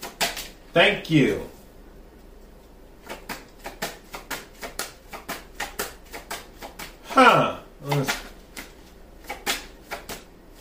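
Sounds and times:
cards handled during an astrology-style love reading: 0:00.0 - 0:00.6, 0:03.0 - 0:07.0, 0:07.8 - 0:10.5
speech: 0:00.7 - 0:01.6.

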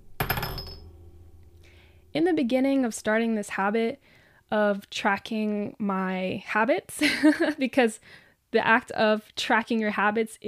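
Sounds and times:
marble dropped into glass jar: 0:00.2 - 0:01.0
speech: 0:02.1 - 0:10.4.

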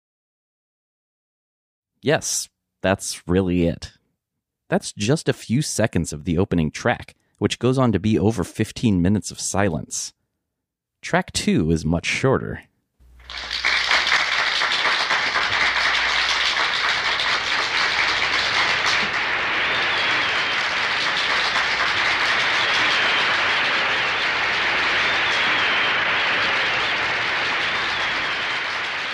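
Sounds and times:
speech: 0:02.0 - 0:04.0, 0:04.7 - 0:10.2, 0:11.0 - 0:12.7
applause on a record: 0:13.1 - 0:29.1.

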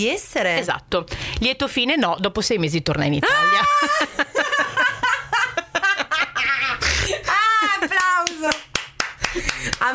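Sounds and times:
speech: 0:00.0 - 0:04.2
laughter: 0:03.2 - 0:08.2
hands clapping in applause: 0:07.9 - 0:09.9.

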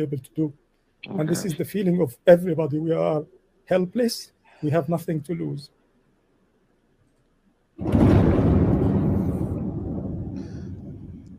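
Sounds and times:
speech: 0:00.0 - 0:05.8
bomb exploding: 0:07.8 - 0:11.3.

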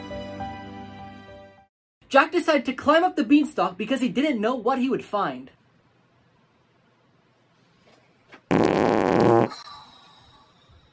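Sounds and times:
speech: 0:02.1 - 0:05.6
fart: 0:08.4 - 0:09.7.

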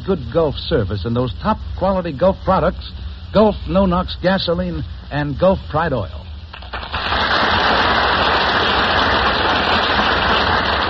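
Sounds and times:
speech: 0:00.0 - 0:06.2
studio audience applause at the Gulf Theater: 0:06.7 - 0:10.8.

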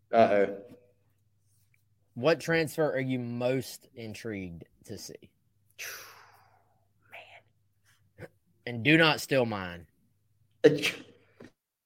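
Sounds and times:
speech: 0:00.1 - 0:00.8, 0:02.2 - 0:06.1, 0:08.2 - 0:09.9, 0:10.6 - 0:11.1
cough: 0:10.6 - 0:11.2.

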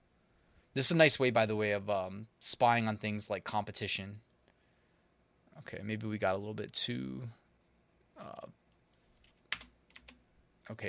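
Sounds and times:
speech: 0:00.8 - 0:04.3, 0:05.6 - 0:07.4, 0:08.2 - 0:08.6, 0:10.7 - 0:10.8
faint typing on a computer keyboard entering a search: 0:08.9 - 0:10.2.

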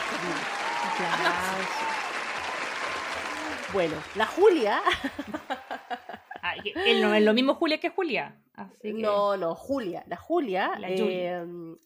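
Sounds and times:
laughter: 0:00.0 - 0:01.7, 0:04.6 - 0:07.1
applause: 0:00.0 - 0:06.1
speech: 0:00.2 - 0:02.0, 0:03.7 - 0:05.6, 0:06.6 - 0:11.8.

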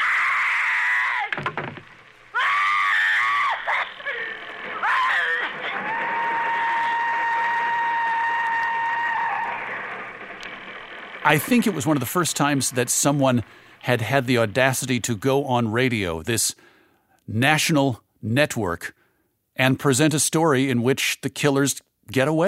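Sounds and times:
woman screaming: 0:00.0 - 0:01.4, 0:02.3 - 0:09.6
speech: 0:11.3 - 0:16.7, 0:17.3 - 0:19.0, 0:19.6 - 0:22.4.

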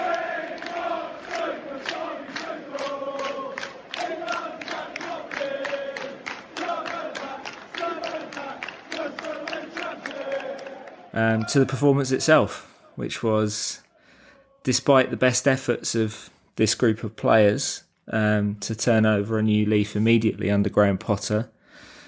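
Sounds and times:
football fans applauding in the 21st minute: 0:00.0 - 0:12.6
speech: 0:11.2 - 0:13.8, 0:14.6 - 0:21.6.

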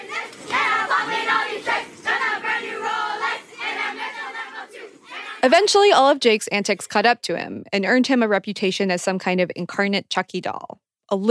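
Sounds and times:
crowd of young kids screaming outside a house: 0:00.0 - 0:05.6
speech: 0:05.4 - 0:11.2.

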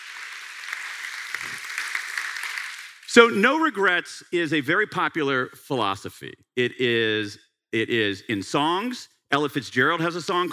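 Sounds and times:
audience applause at a book event in Washington, D.C.: 0:00.0 - 0:03.3
speech: 0:03.1 - 0:10.5.

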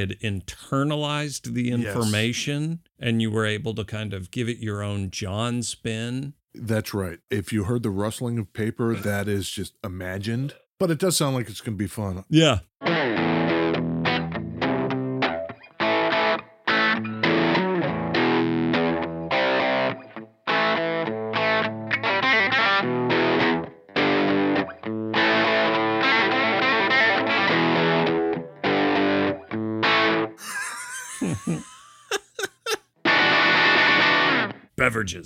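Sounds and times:
speech: 0:00.0 - 0:13.0, 0:35.0 - 0:35.2
laughter: 0:01.8 - 0:02.2, 0:30.4 - 0:32.8
heavily distorted electric guitar hammer-ons and pull-offs: 0:12.8 - 0:30.4, 0:33.1 - 0:34.7.

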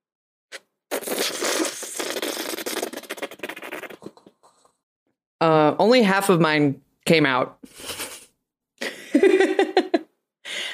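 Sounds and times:
slurping a thick drink: 0:00.5 - 0:04.8
speech: 0:05.4 - 0:07.9
laughter: 0:07.7 - 0:10.0.

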